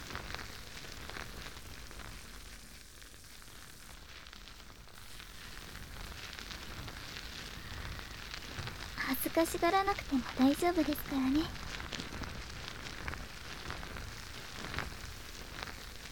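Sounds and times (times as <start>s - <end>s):
foam fizzing during ear cleaning: 0.0s - 16.0s
speech: 9.4s - 11.6s.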